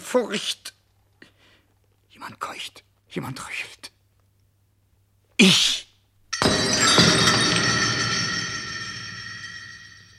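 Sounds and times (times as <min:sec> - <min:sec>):
speech: 0:00.1 - 0:00.7, 0:02.2 - 0:04.0
chandelier crashing: 0:06.3 - 0:10.1
glass shattering: 0:06.4 - 0:10.1.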